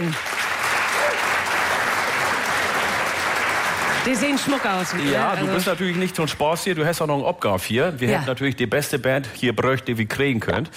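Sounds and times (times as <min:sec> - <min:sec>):
speech: 0:00.0 - 0:00.3, 0:04.0 - 0:10.7
applause from a large audience: 0:00.0 - 0:06.8.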